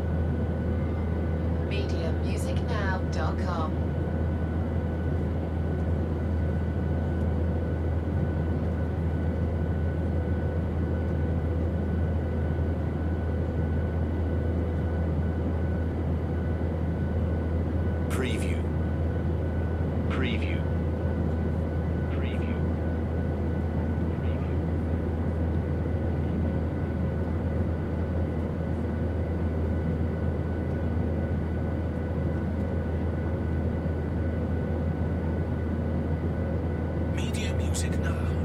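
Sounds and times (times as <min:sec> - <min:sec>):
airplane interior cabin noise: 0:00.0 - 0:38.4.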